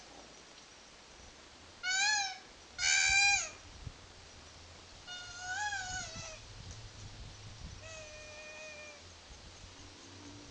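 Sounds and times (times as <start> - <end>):
female koala screeching: 1.8 - 3.6, 5.1 - 6.4, 7.8 - 9.0.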